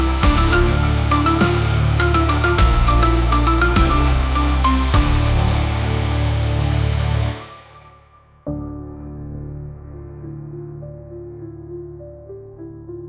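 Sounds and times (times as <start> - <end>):
dark instrumental sonata: 0.0 - 9.1.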